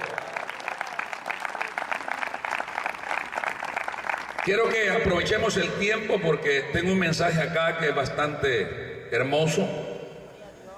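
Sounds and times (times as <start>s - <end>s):
audience applause: 0.0s - 4.9s
speech: 4.4s - 9.9s.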